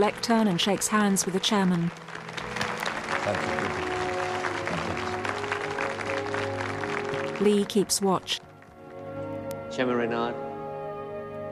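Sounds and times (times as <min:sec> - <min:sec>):
speech: 0:00.0 - 0:02.2, 0:03.3 - 0:03.9, 0:07.4 - 0:08.5, 0:09.8 - 0:10.5
crowd of delegates applauding: 0:00.0 - 0:09.1.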